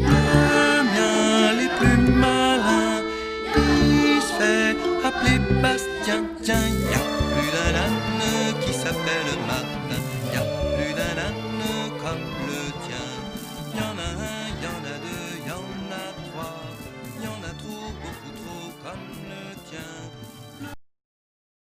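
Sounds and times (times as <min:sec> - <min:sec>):
vocal ensemble singing jazz and world music: 0:00.0 - 0:19.8.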